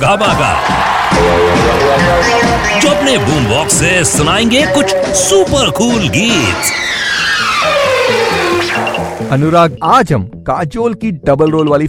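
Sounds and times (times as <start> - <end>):
speech: 0.0 - 7.5, 9.3 - 11.8
crowd applause and cheering: 0.0 - 9.4
people whooping: 0.3 - 9.0.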